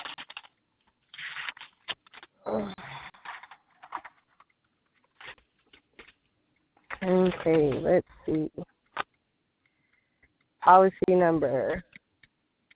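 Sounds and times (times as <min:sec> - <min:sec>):
papers being shuffled and flipped through: 0:00.0 - 0:02.4, 0:03.0 - 0:09.1
speech: 0:07.3 - 0:08.7, 0:10.6 - 0:11.9.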